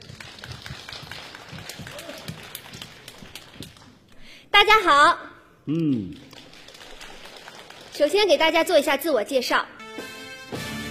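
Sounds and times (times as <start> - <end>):
audience applause: 0.0 - 4.0, 6.1 - 8.2
speech: 4.5 - 6.2, 8.0 - 9.8.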